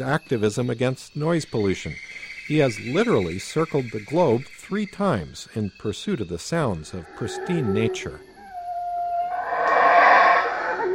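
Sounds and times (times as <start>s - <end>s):
speech: 0.0s - 8.3s
howler monkeys calling in tropical forest: 6.9s - 10.9s.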